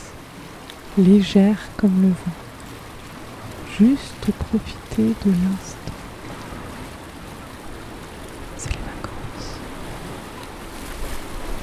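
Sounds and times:
ocean waves breaking: 0.0 - 11.6
speech: 1.0 - 2.4, 3.8 - 5.9.

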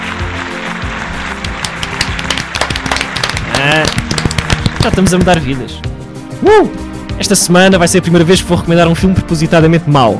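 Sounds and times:
applause: 0.0 - 5.7
speech: 4.8 - 10.1.

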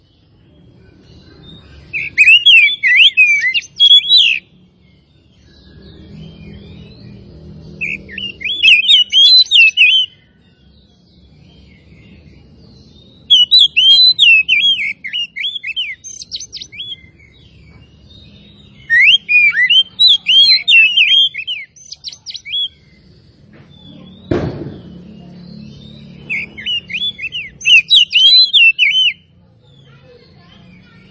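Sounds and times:
Oriental magpie-robin song: 0.0 - 31.0
dull thump: 24.3 - 25.0.

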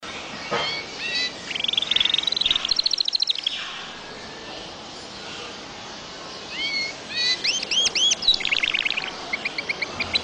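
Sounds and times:
bird song trill: 0.6 - 3.9, 6.5 - 10.2.

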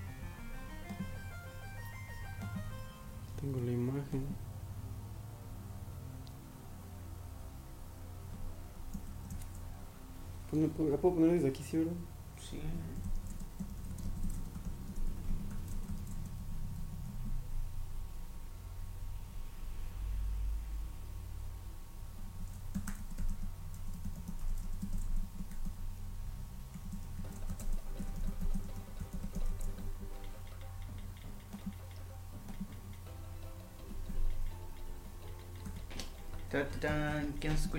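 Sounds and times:
low steady hum: 0.0 - 37.7
soft irregular typing on a computer keyboard: 0.1 - 3.0, 8.9 - 9.6, 12.8 - 17.3, 22.4 - 25.8, 26.7 - 33.0, 33.8 - 37.7
speech: 3.4 - 4.5, 10.5 - 13.1, 36.8 - 37.7.

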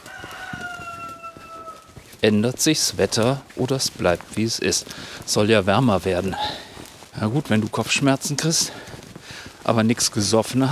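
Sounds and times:
rooster crowing: 0.0 - 2.0
speech: 2.2 - 6.6, 7.2 - 8.9, 9.6 - 10.7.

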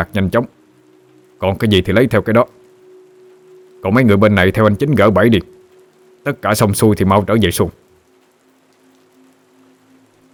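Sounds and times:
speech: 0.0 - 0.6, 1.4 - 2.6, 3.8 - 5.6, 6.2 - 7.8
rain pattering on cajeput leaves underfoot: 0.0 - 10.3.

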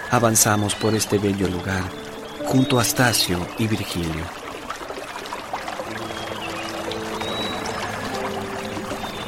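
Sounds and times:
gentle stream of water flowing and trickling: 0.0 - 9.2
speech: 0.1 - 4.4
faint high chirps: 2.0 - 3.9.

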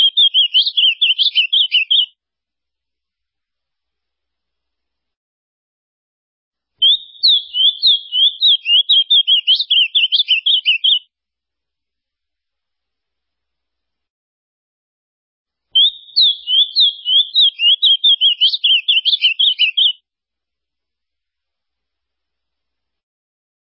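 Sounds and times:
ultramarine grosbeak song: 0.0 - 2.1, 6.8 - 11.0, 15.8 - 20.0.

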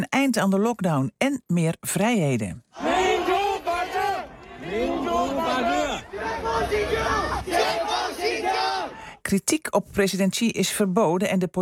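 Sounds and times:
speech: 0.1 - 3.0, 9.3 - 11.6
large protest crowd chanting and shouting: 2.7 - 9.2.

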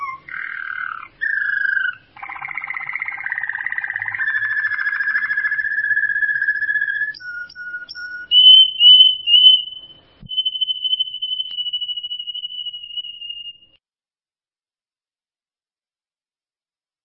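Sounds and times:
bird song of varied whistled phrases and chattery bursts: 0.0 - 13.8.

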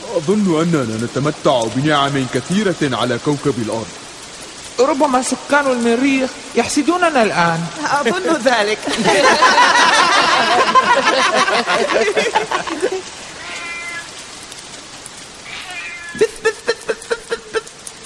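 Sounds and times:
speech: 0.1 - 4.0, 4.8 - 13.3
laughter: 7.8 - 13.2, 16.2 - 17.8
cat meowing: 13.3 - 14.2, 15.4 - 16.4.

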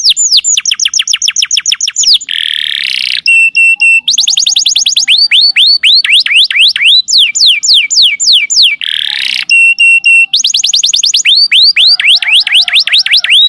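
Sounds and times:
lovebird lure call shrill chirps in fast trills: 0.0 - 13.4.

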